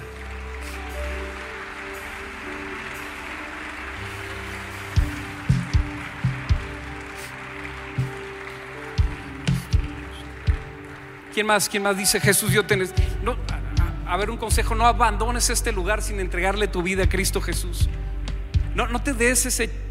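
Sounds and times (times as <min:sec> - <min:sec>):
audience applause: 0:00.0 - 0:13.0
speech: 0:11.4 - 0:13.4, 0:14.1 - 0:18.0, 0:18.8 - 0:19.8.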